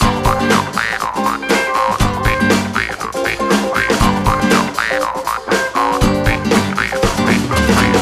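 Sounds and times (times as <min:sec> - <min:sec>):
funky suspense music stem: 0:00.0 - 0:08.0.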